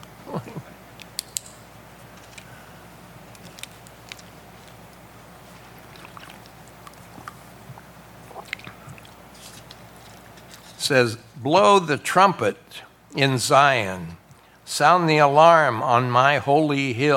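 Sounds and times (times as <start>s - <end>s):
person getting a drink: 5.4s - 10.4s
speech: 10.9s - 17.1s.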